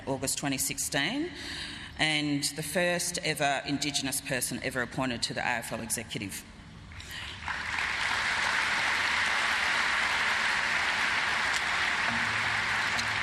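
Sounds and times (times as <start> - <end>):
speech: 0.1 - 6.5
audience applause: 7.4 - 13.2.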